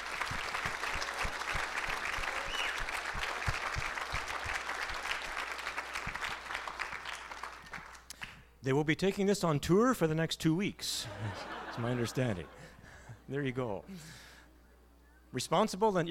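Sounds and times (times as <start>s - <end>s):
crowd clapping: 0.0s - 8.4s
speech: 8.6s - 14.2s, 15.3s - 16.0s
laughter: 11.0s - 12.8s.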